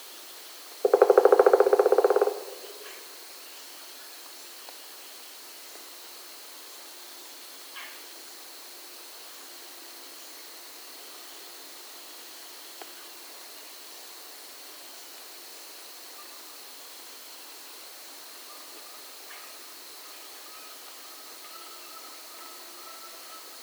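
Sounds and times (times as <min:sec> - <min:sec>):
pileated woodpecker: 0:00.8 - 0:03.1.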